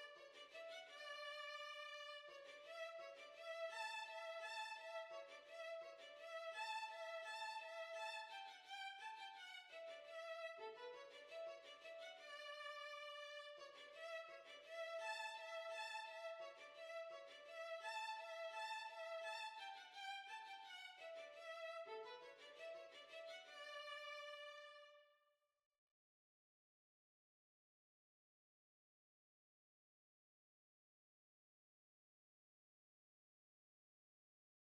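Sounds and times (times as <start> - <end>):
violin: 0.0 - 25.0.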